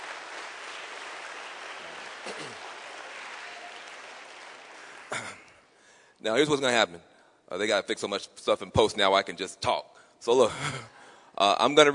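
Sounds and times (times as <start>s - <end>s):
audience applause celebrating young people's creative work: 0.0s - 5.5s
speech: 6.2s - 11.9s.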